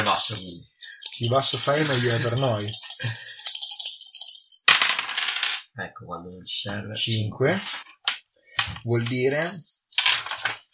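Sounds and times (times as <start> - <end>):
three dice being rolled: 0.0 - 5.6, 7.6 - 9.2, 9.9 - 10.7
speech: 1.2 - 3.2, 6.0 - 7.9, 8.7 - 9.7.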